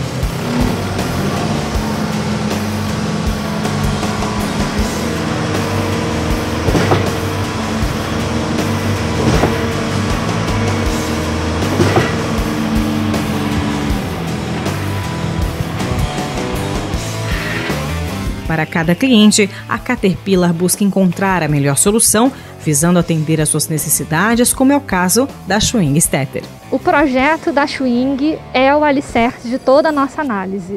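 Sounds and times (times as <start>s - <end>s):
concrete pump machine pumping water: 0.2s - 18.1s
speech: 18.6s - 30.7s.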